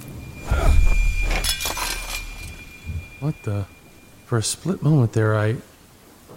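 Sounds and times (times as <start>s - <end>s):
glass of milk knocked to the floor breaking: 0.6s - 3.6s
speech: 3.2s - 5.7s.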